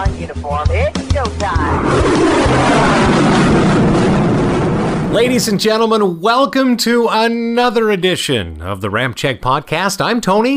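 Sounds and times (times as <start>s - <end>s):
speech: 0.2s - 3.3s, 5.1s - 10.5s
aircraft engine roar during takeoff from runway 21 left in calm winds: 1.3s - 5.8s.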